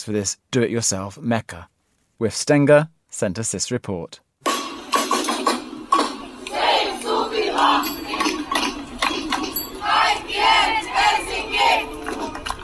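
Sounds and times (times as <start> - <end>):
speech: 0.0 - 4.2
protest crowd shouting slogans: 6.1 - 12.4.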